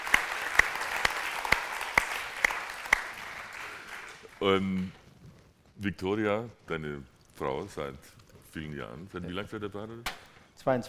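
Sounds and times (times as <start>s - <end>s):
audience applause: 0.0s - 4.5s
speech: 4.4s - 5.0s, 5.8s - 10.8s.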